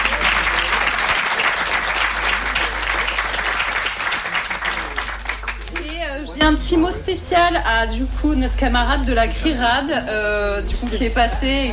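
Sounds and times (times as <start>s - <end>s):
audience applause: 0.0s - 6.2s
speech: 6.4s - 11.7s.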